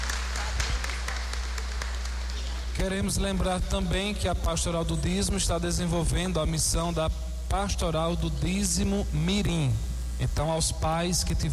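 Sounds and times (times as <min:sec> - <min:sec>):
clapping for the children at a church service: 0:00.0 - 0:03.2
low hum: 0:00.0 - 0:11.5
speech: 0:02.8 - 0:11.5.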